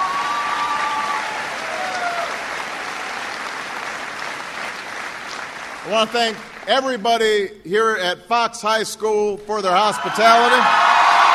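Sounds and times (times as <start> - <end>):
audience applause: 0.0 - 6.8, 9.9 - 11.3
speech: 5.8 - 10.9.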